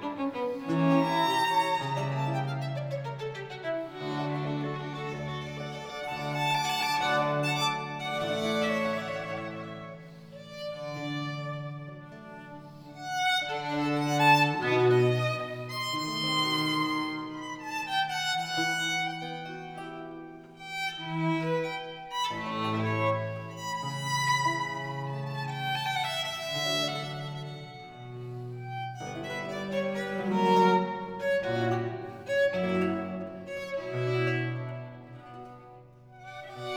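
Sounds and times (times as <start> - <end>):
two violins, strings and continuo in G major, andante: 0.0 - 36.7.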